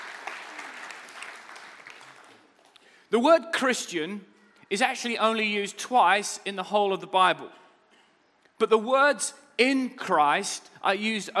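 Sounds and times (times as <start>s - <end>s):
audience applause welcoming online viewers: 0.0s - 2.6s
speech: 3.1s - 7.6s, 8.6s - 11.3s.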